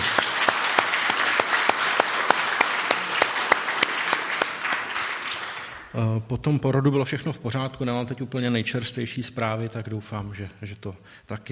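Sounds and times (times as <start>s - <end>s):
audience applause: 0.0s - 6.0s
speech: 6.0s - 11.5s.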